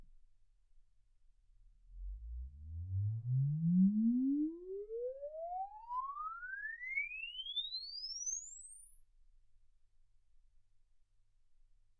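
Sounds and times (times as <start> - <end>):
exponential sine sweep from 10 Hz to 24 kHz: 2.0 - 9.4.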